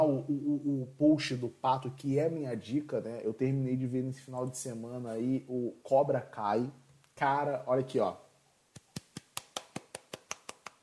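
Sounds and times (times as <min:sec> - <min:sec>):
speech: 0:00.1 - 0:08.2
single pair of hands clapping: 0:08.7 - 0:10.8.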